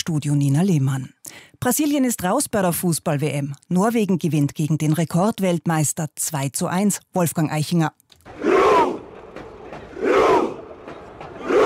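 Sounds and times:
speech: 0:00.1 - 0:08.5
Norwegian football fans celebrating: 0:08.3 - 0:11.6.

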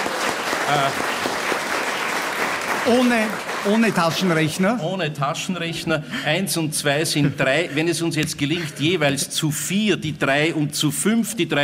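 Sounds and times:
audience applause: 0:00.0 - 0:04.7
speech: 0:00.7 - 0:01.1, 0:02.8 - 0:11.6.

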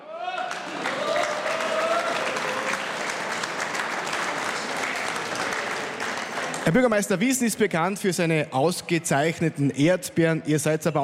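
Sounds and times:
audience applause at live outdoor event: 0:00.0 - 0:07.3
speech: 0:06.6 - 0:11.0.

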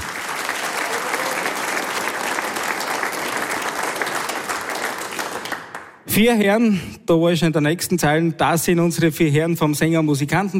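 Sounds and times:
audience applause: 0:00.0 - 0:06.0
speech: 0:06.2 - 0:10.5.

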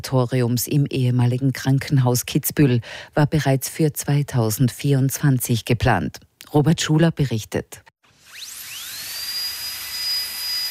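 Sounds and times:
speech: 0:00.0 - 0:07.9
dentist's drill whirring: 0:08.0 - 0:10.6.

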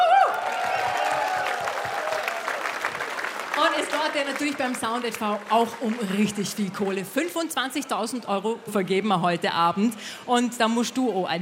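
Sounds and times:
audience applauding and cheering: 0:00.0 - 0:06.8
speech: 0:03.8 - 0:11.4.

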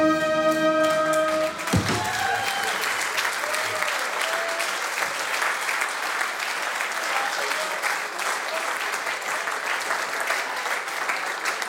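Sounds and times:
standing ovation applause: 0:00.1 - 0:11.6.

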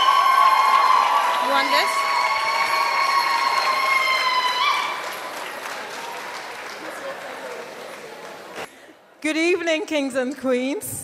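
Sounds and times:
audience applause in a full ballroom at an evening celebration: 0:00.0 - 0:08.7
speech: 0:01.5 - 0:02.0, 0:09.2 - 0:11.0.

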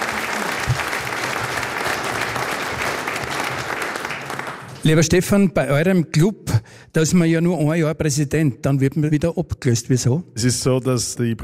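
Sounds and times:
audience applause: 0:00.0 - 0:05.0
speech: 0:04.8 - 0:11.4.

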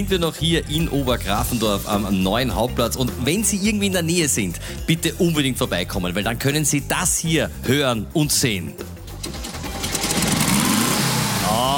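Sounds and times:
speech: 0:00.0 - 0:09.0
small Volkswagen car engine idling: 0:09.2 - 0:11.7.

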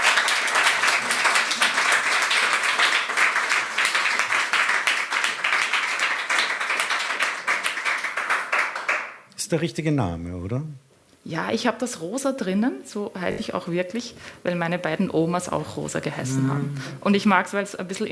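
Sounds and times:
audience applause: 0:00.0 - 0:09.2
speech: 0:09.5 - 0:18.1.

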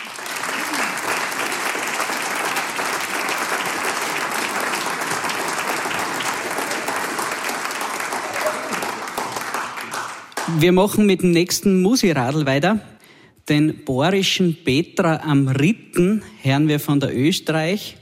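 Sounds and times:
audience applause: 0:00.0 - 0:10.8
speech: 0:10.5 - 0:12.9, 0:13.5 - 0:18.0.

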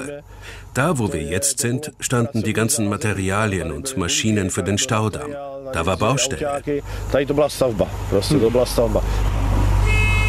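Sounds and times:
speech: 0:00.0 - 0:09.4
constant low engine rumble: 0:00.0 - 0:10.2
ship horn departure signal: 0:09.8 - 0:10.2.

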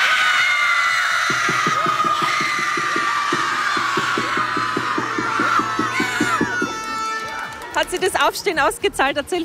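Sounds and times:
schoolchildren cheering and screaming at a football win: 0:00.0 - 0:07.8
rhythmic clapping or drumming: 0:01.2 - 0:08.0
speech: 0:07.8 - 0:09.4.

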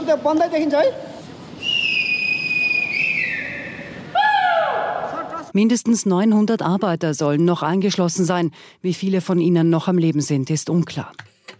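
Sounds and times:
speech: 0:00.1 - 0:01.1, 0:05.5 - 0:11.3
rescue workers' shrill whistle blasts: 0:01.6 - 0:04.8
rescue workers shouting: 0:03.5 - 0:05.4.

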